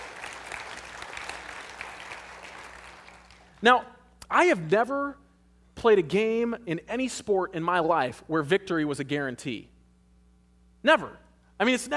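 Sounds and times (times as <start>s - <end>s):
audience clapping: 0.0s - 3.6s
speech: 3.6s - 5.2s, 5.8s - 9.7s, 10.8s - 11.9s.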